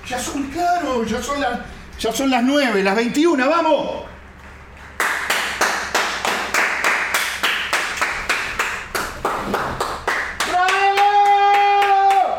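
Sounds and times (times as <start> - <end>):
speech: 0.1 - 4.1
people clapping in rhythm: 4.8 - 12.3.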